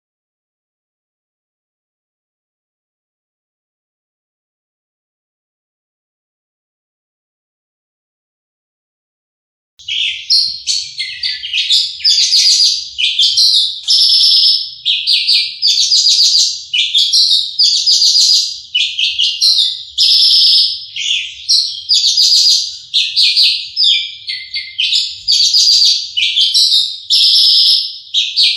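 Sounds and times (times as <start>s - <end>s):
Horsfield's bush lark song: 9.8s - 28.5s.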